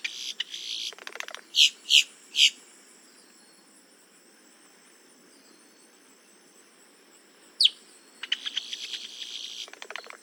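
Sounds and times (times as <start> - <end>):
boat-tailed grackle Quiscalus major calls: 0.0 - 2.6, 7.6 - 10.2.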